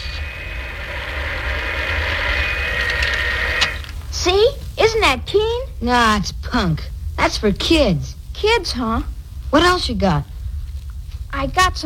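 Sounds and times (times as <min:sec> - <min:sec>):
toy electric train running: 0:00.0 - 0:04.1
speech: 0:04.2 - 0:10.3, 0:11.4 - 0:11.8.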